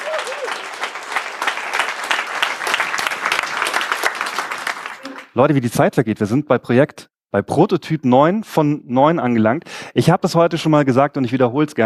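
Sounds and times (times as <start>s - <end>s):
audience applause: 0.0s - 5.4s
speech: 5.4s - 11.8s.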